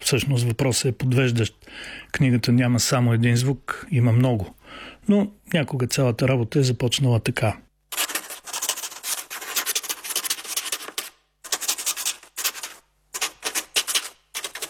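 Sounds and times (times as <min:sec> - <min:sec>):
speech: 0:00.1 - 0:07.6
quill pen writing on paper: 0:07.9 - 0:14.6.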